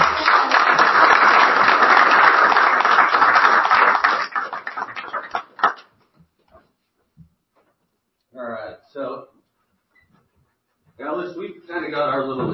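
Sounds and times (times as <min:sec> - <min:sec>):
applause: 0:00.0 - 0:06.0.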